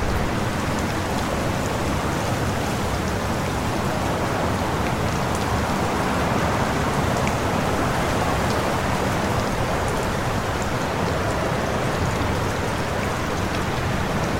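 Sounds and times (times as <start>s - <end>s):
rain: 0.0s - 14.3s.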